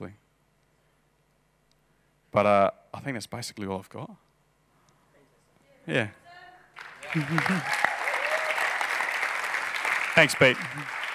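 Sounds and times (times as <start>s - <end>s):
speech: 0.0s - 0.2s, 2.4s - 4.3s, 5.9s - 6.2s, 7.1s - 7.8s, 10.2s - 11.0s
audience applause: 6.8s - 11.1s.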